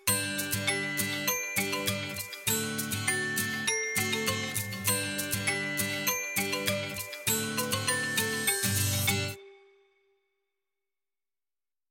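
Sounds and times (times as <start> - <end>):
instrument playing: 0.5 - 9.4.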